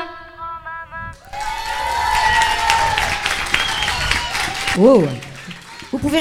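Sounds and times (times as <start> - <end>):
audience applause: 1.2 - 6.1
speech: 4.8 - 5.3, 6.0 - 6.1.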